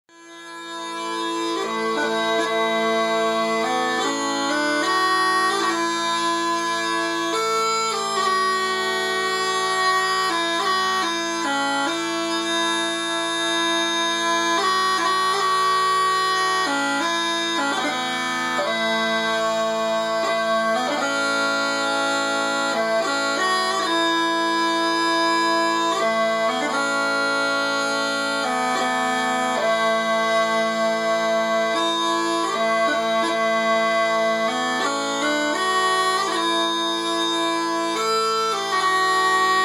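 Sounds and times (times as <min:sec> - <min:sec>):
smallpipes playing: 0:00.1 - 0:39.6.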